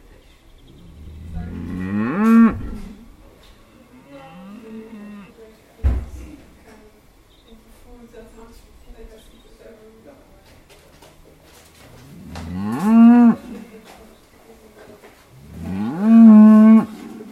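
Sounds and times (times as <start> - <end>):
cows: 0.6 - 5.5, 10.9 - 14.1, 15.3 - 17.3.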